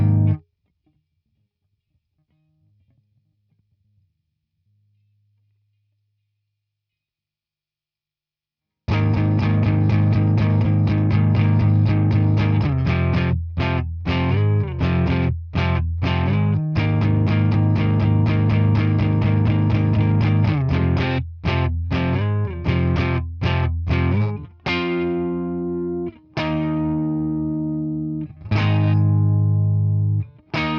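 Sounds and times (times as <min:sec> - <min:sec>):
guitar: 0:00.0 - 0:01.0, 0:08.9 - 0:30.7.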